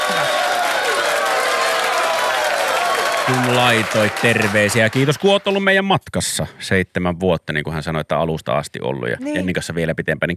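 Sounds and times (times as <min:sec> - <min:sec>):
applause: 0:00.0 - 0:05.8
crowd noise: 0:00.0 - 0:05.8
speech: 0:03.3 - 0:10.3.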